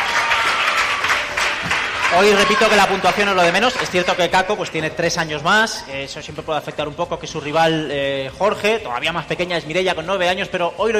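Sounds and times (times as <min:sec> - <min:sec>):
audience applause: 0:00.0 - 0:04.5
speech: 0:02.1 - 0:10.9.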